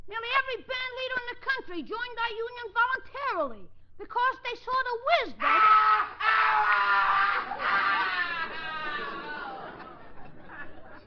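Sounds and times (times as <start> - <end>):
speech: 0.4 - 8.2
distant scream from a cellar: 5.4 - 9.4
laughter: 5.6 - 11.0.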